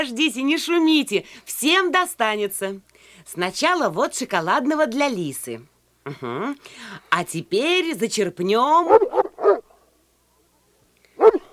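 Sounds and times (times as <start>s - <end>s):
speech: 0.0s - 9.2s
dog barking loudly: 8.8s - 9.7s, 11.2s - 11.5s.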